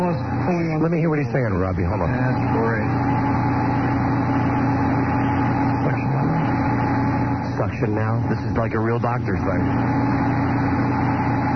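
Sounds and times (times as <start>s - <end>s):
buzzing of surgical eye flap maker: 0.0s - 11.5s
speech: 0.8s - 3.5s, 7.6s - 10.2s.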